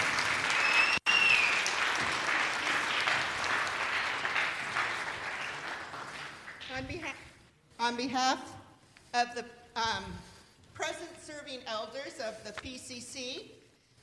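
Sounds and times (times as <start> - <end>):
audience round of applause: 0.0 - 6.8
speech: 7.9 - 8.5, 9.2 - 13.6.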